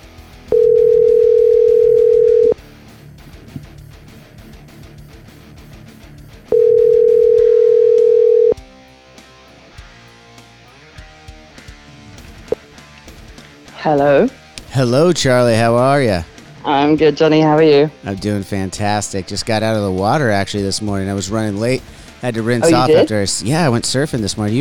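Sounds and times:
telephone ringing tone: 0.5s - 2.6s, 6.5s - 8.6s
speech: 13.9s - 24.5s.

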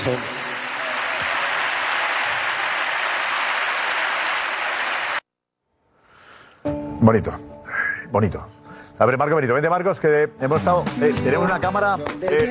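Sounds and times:
speech: 0.0s - 0.4s, 7.0s - 7.5s, 8.1s - 12.4s
stadium crowd applause: 0.0s - 5.2s.

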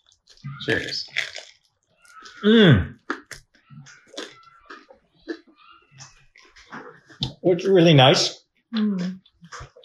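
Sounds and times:
chewing homemade crusty sourdough bread: 0.0s - 2.4s, 3.0s - 7.2s
mouth smacking: 0.4s - 1.5s, 2.1s - 8.2s
speech: 0.6s - 1.2s, 2.4s - 3.0s, 7.4s - 9.2s.

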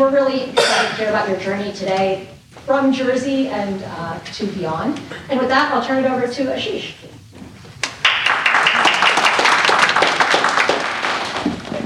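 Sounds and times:
speech: 0.0s - 7.2s
audience applause: 7.8s - 11.8s.

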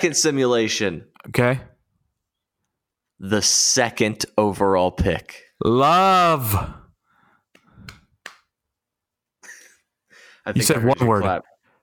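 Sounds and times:
speech: 0.0s - 1.7s, 3.2s - 6.8s, 10.4s - 11.5s
single hand clap: 7.5s - 8.5s.

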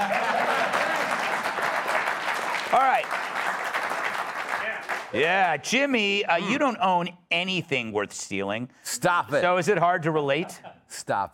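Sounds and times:
audience applause: 0.0s - 5.6s
speech: 2.7s - 3.3s, 5.1s - 11.3s.

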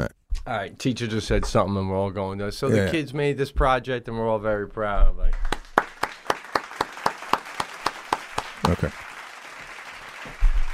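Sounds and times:
speech: 0.0s - 5.6s, 8.7s - 9.0s
hands clapping in unison: 5.3s - 10.7s.

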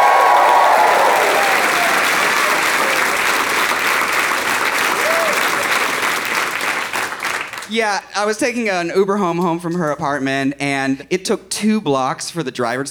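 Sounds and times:
faint whoops: 0.0s - 3.2s, 5.0s - 5.7s
audience applause: 0.0s - 7.8s
speech: 7.7s - 12.8s.

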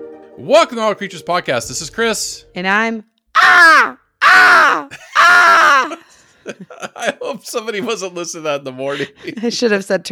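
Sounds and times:
speech: 0.4s - 10.1s
person imitating crow caws: 3.4s - 6.0s
laughter: 4.7s - 8.1s.

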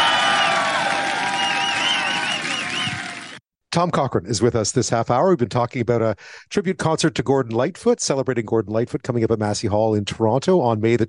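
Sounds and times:
crowd at Camp Julian shouting: 0.0s - 3.4s
high whistles and whoops from the crowd at Camp Julian: 0.0s - 3.4s
speech: 3.7s - 11.0s.

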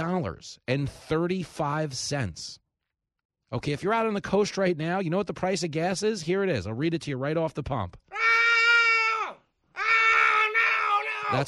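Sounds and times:
speech: 0.0s - 2.6s, 3.5s - 8.4s, 11.3s - 11.4s
man screaming: 8.1s - 11.4s.

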